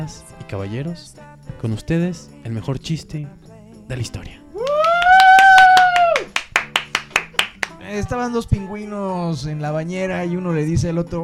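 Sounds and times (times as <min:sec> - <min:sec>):
speech: 0:00.0 - 0:04.4, 0:07.9 - 0:11.2
hand clapping like applause: 0:04.6 - 0:07.8.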